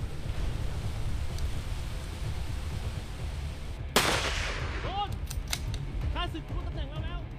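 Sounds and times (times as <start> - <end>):
steady rushing background: 0.0 - 7.3
gunfire in tactical shooting short film: 4.0 - 5.7.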